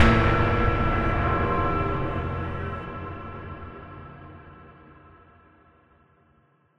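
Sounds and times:
short musical sting: 0.0s - 4.4s.

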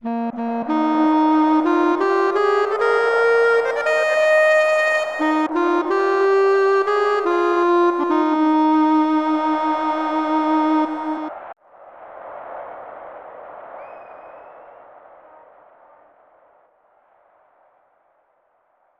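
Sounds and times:
national anthem: 0.0s - 11.6s.

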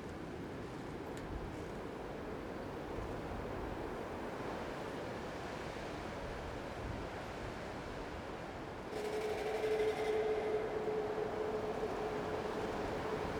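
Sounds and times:
world ambience: 0.2s - 13.3s.

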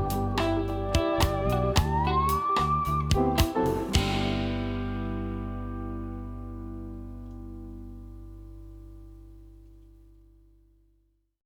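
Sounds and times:
bongo drums: 0.0s - 5.4s.

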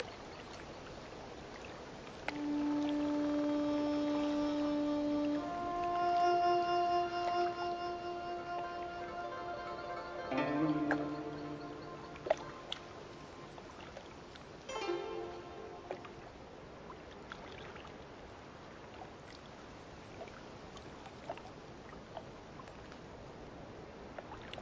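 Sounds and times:
ambient music: 2.4s - 13.5s, 14.7s - 16.3s.

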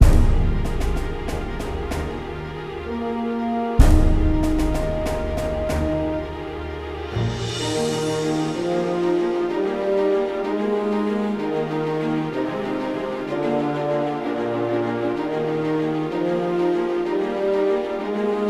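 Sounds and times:
victory music loop: 0.0s - 18.4s.

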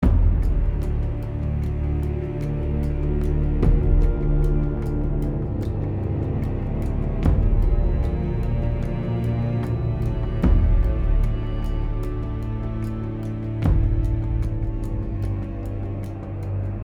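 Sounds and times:
tense music loop: 0.0s - 16.8s.

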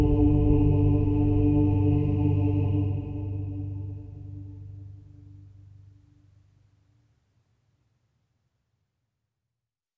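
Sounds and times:
chamber choir singing: 0.0s - 4.7s.

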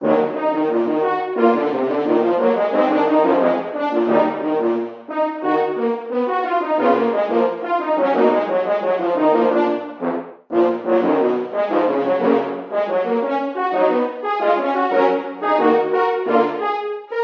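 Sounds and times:
horn: 0.0s - 17.2s.

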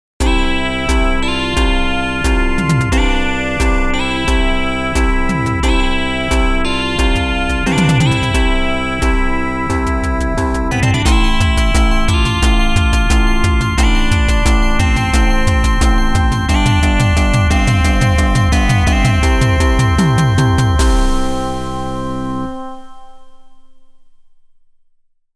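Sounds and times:
victorious brass bell ringing: 0.2s - 23.8s.

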